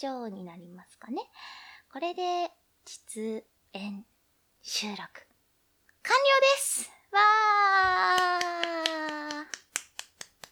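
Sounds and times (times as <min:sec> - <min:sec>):
speech: 0:00.0 - 0:05.3, 0:06.0 - 0:09.6
one person clapping hands alone: 0:07.8 - 0:10.5.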